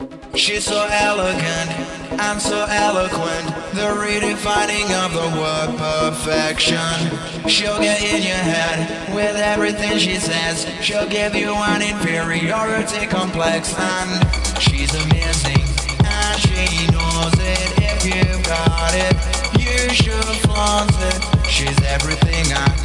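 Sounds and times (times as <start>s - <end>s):
funky house music: 0.0s - 22.8s.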